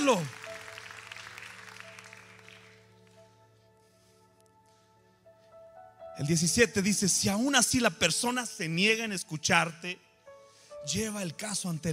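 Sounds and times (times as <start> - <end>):
speech: 0.0 - 0.4, 6.2 - 10.0, 10.8 - 11.9
audience applause: 0.0 - 3.1.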